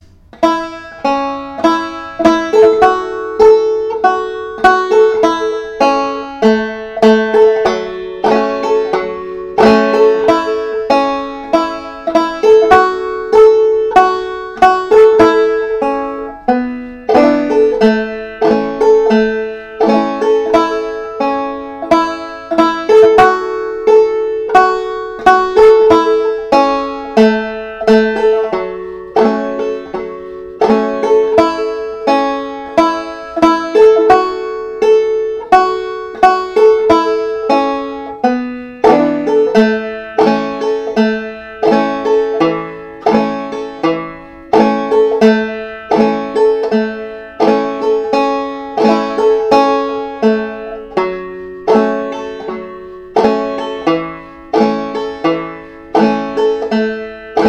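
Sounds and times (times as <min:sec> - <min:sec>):
banjo: 0:00.0 - 0:57.4.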